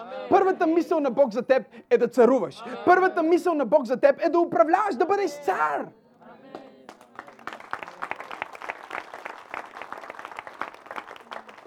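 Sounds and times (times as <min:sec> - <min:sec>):
speech: 0:00.3 - 0:06.0
audience clapping: 0:06.5 - 0:11.6.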